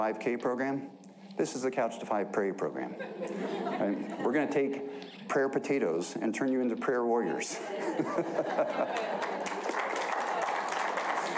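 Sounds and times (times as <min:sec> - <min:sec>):
speech: 0:00.0 - 0:09.5
laughter: 0:02.9 - 0:04.8, 0:07.5 - 0:11.3
audience applause: 0:08.6 - 0:11.3.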